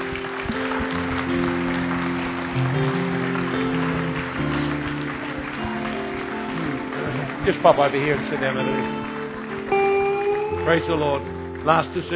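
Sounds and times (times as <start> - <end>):
audience clapping: 0.0 - 12.1
speech: 7.5 - 9.1, 10.6 - 12.1.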